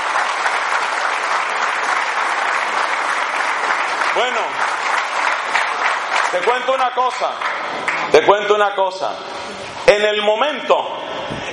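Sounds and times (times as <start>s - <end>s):
audience applause: 0.0s - 8.6s
speech: 4.2s - 4.6s, 6.3s - 7.5s, 8.1s - 11.5s.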